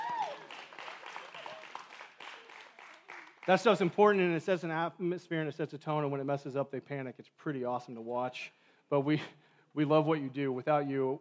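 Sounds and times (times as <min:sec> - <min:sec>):
audience applause: 0:00.0 - 0:04.0
speech: 0:03.4 - 0:11.1.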